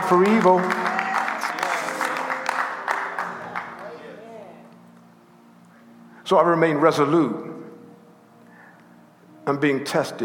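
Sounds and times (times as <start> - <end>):
audience clapping: 0.0 - 4.3
speech: 0.1 - 0.8, 6.3 - 7.6, 9.5 - 10.2.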